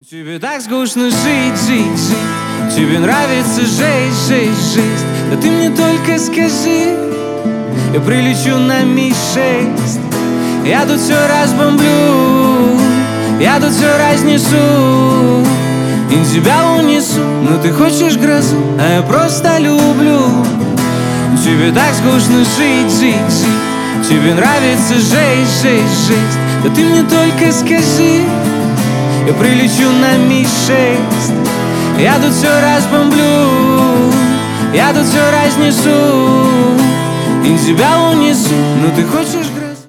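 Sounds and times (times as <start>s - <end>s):
acoustic music: 0.0s - 39.8s.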